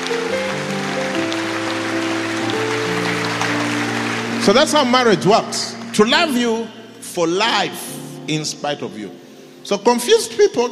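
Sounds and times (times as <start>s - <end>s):
audience clapping: 0.0s - 6.7s
speech: 4.4s - 10.7s.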